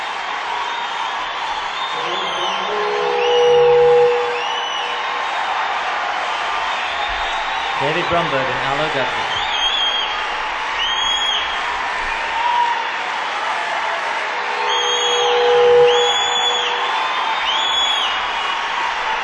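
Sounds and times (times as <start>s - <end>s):
applause and cheering: 0.0s - 19.2s
loud whistles from audience member: 0.6s - 5.6s, 6.3s - 8.3s, 9.0s - 11.7s, 14.6s - 19.2s
speech: 8.0s - 9.4s.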